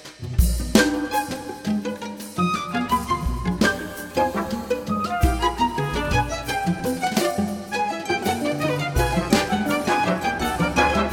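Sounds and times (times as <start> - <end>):
jazz guitar concerto: 0.3 - 11.1.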